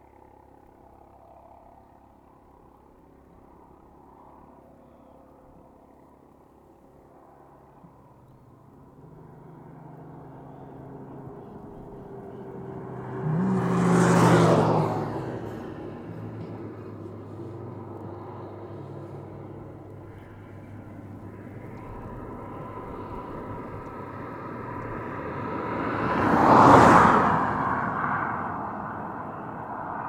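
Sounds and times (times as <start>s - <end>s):
wind on Estrada de Sao Jorge: 0.0s - 30.0s
motorcycle passing fast on Estrada de Sao Jorge: 9.2s - 30.0s.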